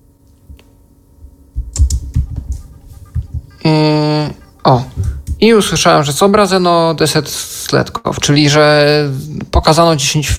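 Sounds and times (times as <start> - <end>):
computer keyboard key clicks: 1.7 - 2.6
sustained electronic tone: 2.0 - 7.8
speech: 3.6 - 10.3.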